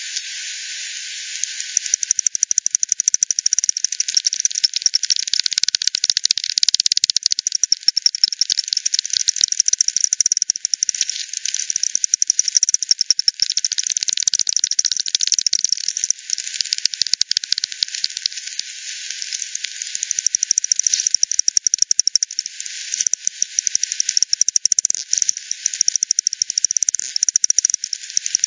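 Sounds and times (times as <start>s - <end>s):
soft hiss: 0.0s - 1.8s
bat echolocation clicks: 1.4s - 28.4s.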